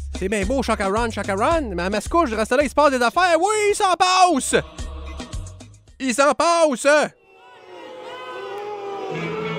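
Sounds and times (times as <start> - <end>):
speech: 0.2 - 4.8, 6.0 - 7.2
angry crowd of citizens booing and jeering at a Mascouche town council meeting: 7.2 - 9.5.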